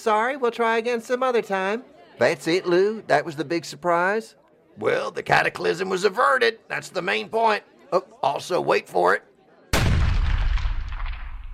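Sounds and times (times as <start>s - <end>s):
speech: 0.0s - 9.3s
explosion of several devices: 9.8s - 11.5s.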